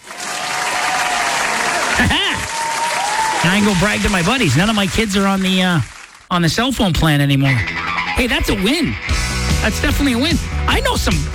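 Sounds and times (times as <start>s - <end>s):
round-of-applause sound effect of crowd clapping: 0.0s - 6.3s
speech: 2.0s - 2.4s, 3.4s - 11.3s.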